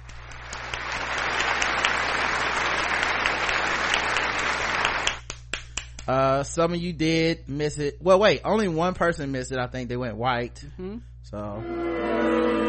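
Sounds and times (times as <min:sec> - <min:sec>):
crowd applauding: 0:00.0 - 0:06.0
speech: 0:06.1 - 0:12.6.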